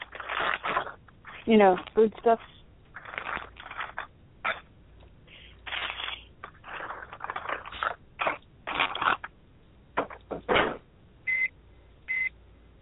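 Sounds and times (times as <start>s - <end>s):
crunchy rustling kitchen noises: 0.0s - 9.3s
speech: 1.5s - 2.6s
microwave oven short high-pitched beeps: 11.3s - 12.3s.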